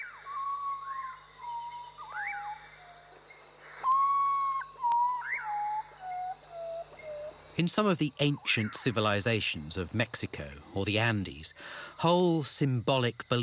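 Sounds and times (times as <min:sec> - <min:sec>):
ocarina melody: 0:00.0 - 0:07.6
speech: 0:07.6 - 0:13.4.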